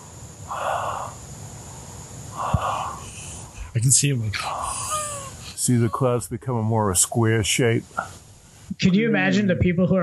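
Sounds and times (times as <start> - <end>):
dog breathing in slow noisy snorts: 0.0 - 3.8, 7.8 - 8.3
faint steady hum: 0.0 - 10.0
laughter: 3.0 - 7.8
speech: 3.7 - 4.8, 5.6 - 8.2, 8.8 - 10.0.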